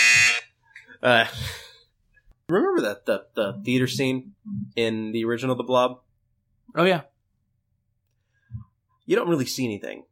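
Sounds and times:
game show buzzer: 0:00.0 - 0:00.5
speech: 0:01.0 - 0:01.6, 0:02.5 - 0:06.1, 0:06.7 - 0:07.1, 0:09.1 - 0:10.0.

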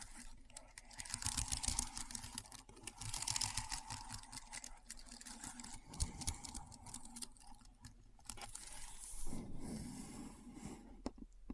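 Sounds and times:
keyboard keystrokes clicking: 0:00.0 - 0:08.7
smooth rustling handling sound: 0:00.0 - 0:10.9.

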